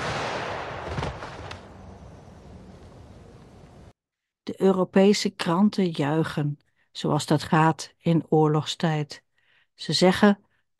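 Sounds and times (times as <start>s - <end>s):
firing squad rifle volley: 0.0s - 3.8s
speech: 4.6s - 9.2s, 9.8s - 10.4s.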